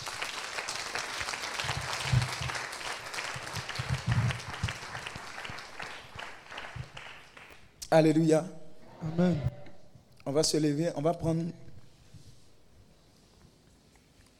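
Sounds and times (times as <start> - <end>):
church congregation clapping for the Lord: 0.0 - 7.9
speech: 7.9 - 9.6, 10.3 - 11.6.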